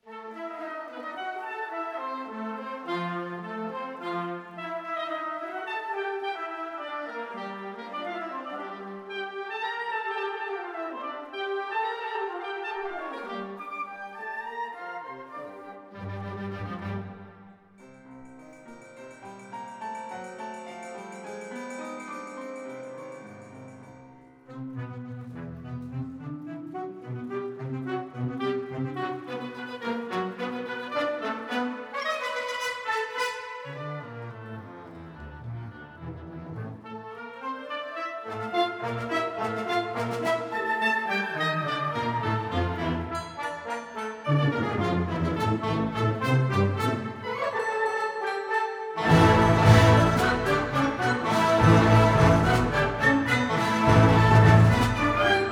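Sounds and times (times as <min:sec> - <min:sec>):
symphonic band playing: 0:00.0 - 0:23.8, 0:24.4 - 0:55.5.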